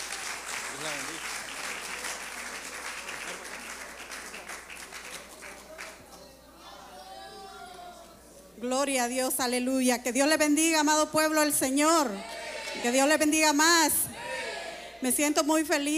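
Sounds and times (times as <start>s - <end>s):
audience applause: 0.0s - 6.0s
speech: 0.8s - 1.4s, 8.6s - 14.1s, 15.0s - 15.9s.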